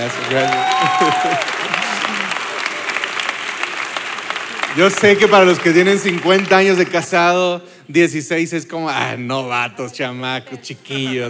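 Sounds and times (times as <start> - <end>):
speech: 0.0 - 1.8, 4.8 - 11.2
audience applause: 0.0 - 7.4.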